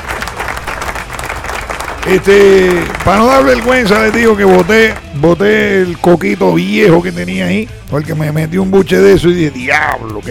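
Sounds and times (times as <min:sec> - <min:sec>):
crowd applause: 0:00.0 - 0:05.1
speech: 0:02.1 - 0:10.3.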